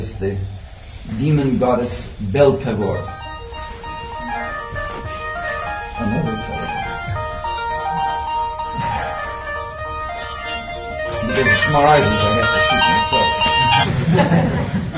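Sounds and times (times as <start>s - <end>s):
speech: 0.0s - 3.2s, 11.4s - 13.2s, 14.1s - 14.8s
cell phone ringing: 2.8s - 13.9s
laughter: 11.2s - 14.9s.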